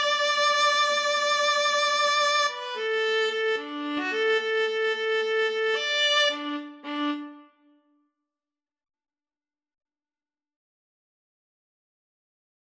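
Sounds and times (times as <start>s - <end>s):
viola duet: 0.0s - 7.7s.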